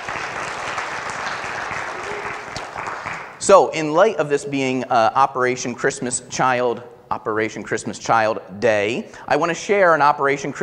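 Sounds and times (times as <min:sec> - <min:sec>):
crowd round of applause: 0:00.0 - 0:03.4
speech: 0:03.5 - 0:10.6.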